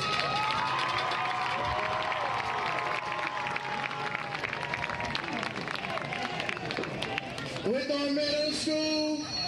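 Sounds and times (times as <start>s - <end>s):
crowd shouts and whistles: 0.0s - 2.3s, 5.8s - 9.4s
crowd applauding in a large space: 0.0s - 8.6s.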